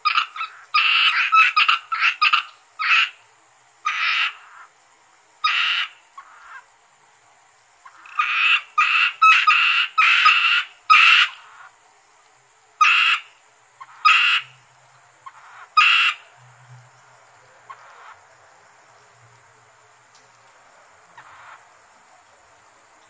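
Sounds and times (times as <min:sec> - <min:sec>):
Asian grass frog Rana limnocharis croaking in short raspy bursts: 0:00.0 - 0:03.2, 0:03.8 - 0:04.8, 0:05.4 - 0:06.7, 0:07.8 - 0:11.8, 0:12.8 - 0:17.0, 0:17.6 - 0:18.3, 0:21.0 - 0:21.8.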